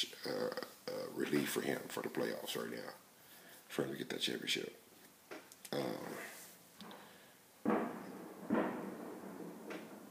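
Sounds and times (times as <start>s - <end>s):
speech: 0.0s - 3.1s, 3.7s - 4.9s
fireworks going off outside with booms and cracks: 6.8s - 10.0s.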